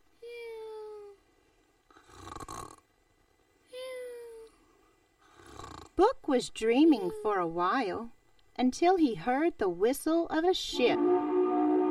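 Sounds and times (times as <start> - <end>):
voice imitating snoring: 1.9 - 2.9, 5.3 - 6.0
speech: 6.0 - 11.1.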